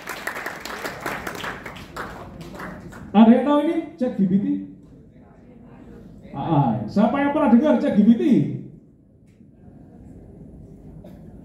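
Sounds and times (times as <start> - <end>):
crowd applause: 0.0 - 3.1
speech: 3.1 - 4.7, 6.4 - 8.6.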